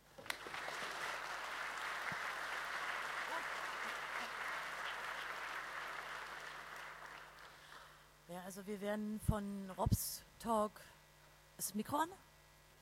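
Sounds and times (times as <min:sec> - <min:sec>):
audience applause: 0:00.2 - 0:07.6
speech: 0:08.4 - 0:11.0, 0:11.6 - 0:12.3.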